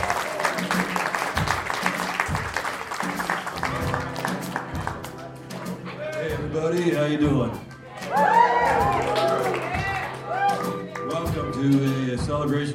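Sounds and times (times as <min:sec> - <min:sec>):
audience applauding: 0:00.0 - 0:06.0, 0:07.6 - 0:11.4
speech: 0:06.7 - 0:08.4, 0:11.6 - 0:12.7.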